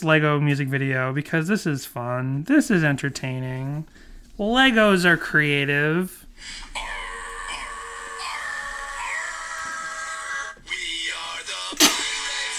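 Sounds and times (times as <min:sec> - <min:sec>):
speech: 0:00.0 - 0:07.0
small throaty sound: 0:06.3 - 0:10.9, 0:11.5 - 0:12.5
woman sneezing: 0:11.8 - 0:12.1.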